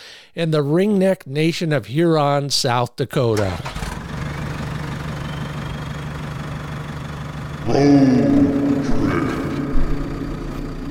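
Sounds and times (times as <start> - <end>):
speech: 0.4 - 3.8, 7.7 - 8.3
truck engine starting and idling: 3.3 - 10.9.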